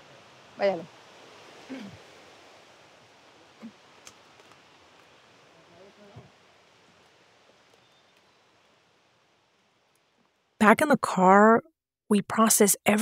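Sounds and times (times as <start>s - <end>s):
rain falling outdoors: 0.0s - 10.5s
speech: 0.6s - 1.0s, 1.7s - 2.0s, 10.6s - 13.0s.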